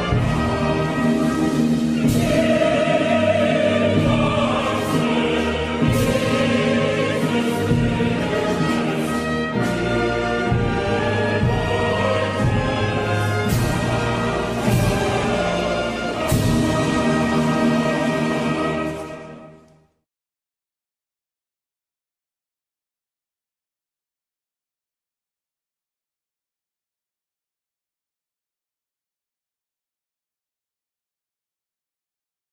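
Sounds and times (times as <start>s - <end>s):
national anthem: 0.0s - 19.8s.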